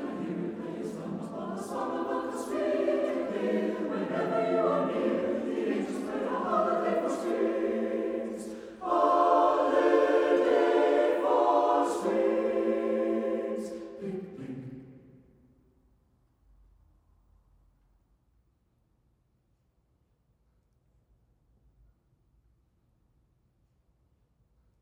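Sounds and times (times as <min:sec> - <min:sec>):
strings: 0:00.0 - 0:15.1.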